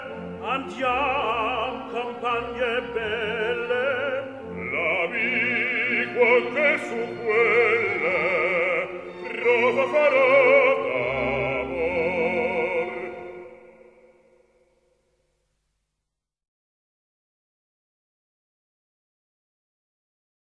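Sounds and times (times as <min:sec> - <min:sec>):
minuet: 0:00.0 - 0:14.7.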